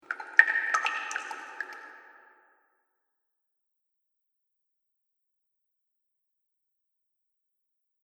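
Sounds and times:
water dripping in a cave: 0.0 - 2.6.

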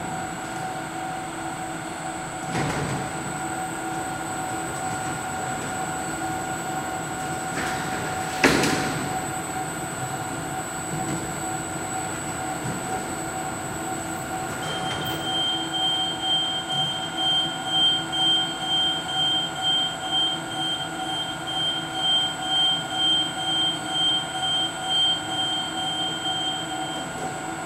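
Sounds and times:
airport X-ray machine conveyor belt running with luggage: 0.0 - 27.6
airport metal detector alarm beeps: 14.6 - 27.1.

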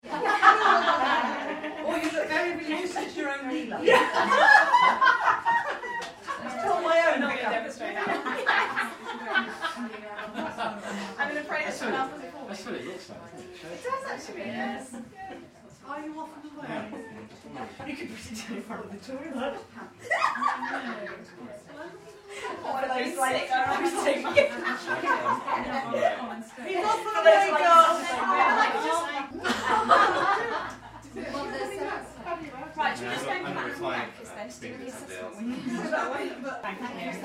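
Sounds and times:
small group of mostly girls laughing at a party: 0.0 - 2.1, 2.7 - 12.1, 19.4 - 21.5, 22.3 - 32.3
small group of mostly girls chatting at a party: 0.1 - 37.2.

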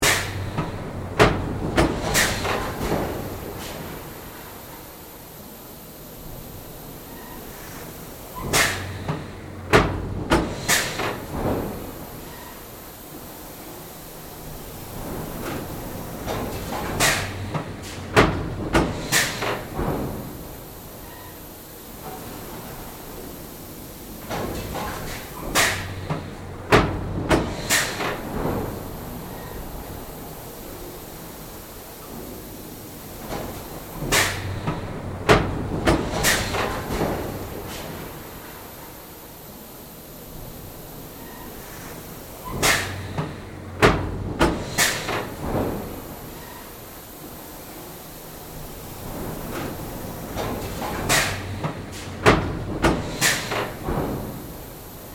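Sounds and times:
pneumatic factory press stamping: 0.0 - 4.2, 7.1 - 12.6, 14.9 - 21.4, 24.2 - 30.0, 33.2 - 38.8, 41.2 - 46.8, 48.8 - 55.1
pneumatic hiss: 0.0 - 55.1.

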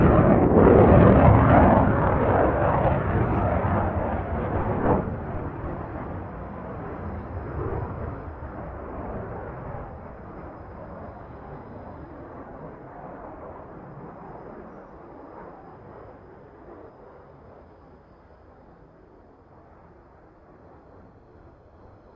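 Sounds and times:
F-111 jet fighter aircraft taking off: 0.0 - 13.8.

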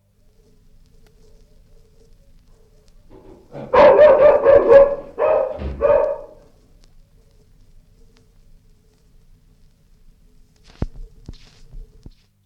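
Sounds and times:
dog barking: 1.2 - 6.6
door opening and closing: 5.0 - 6.4.

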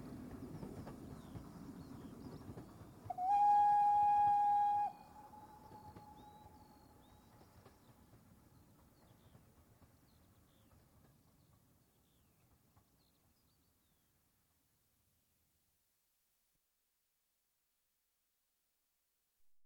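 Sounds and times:
steam train coasting past at medium speed: 0.0 - 12.9
steam train whistle: 3.1 - 6.7.

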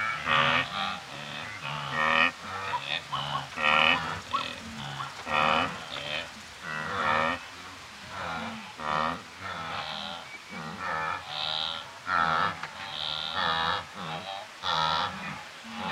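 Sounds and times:
wildebeest grunting in Kenya: 0.0 - 15.8.

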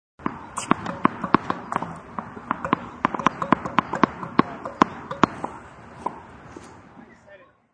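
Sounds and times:
tennis ball bouncing: 0.2 - 6.3.

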